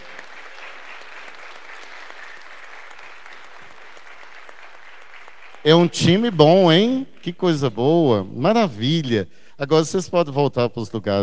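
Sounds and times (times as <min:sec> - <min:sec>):
round of applause: 0:00.0 - 0:08.1
speech: 0:05.6 - 0:11.2.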